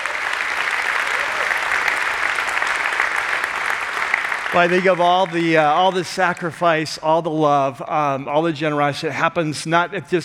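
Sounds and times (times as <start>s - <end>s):
audience applause: 0.0s - 6.7s
speech: 4.5s - 10.2s.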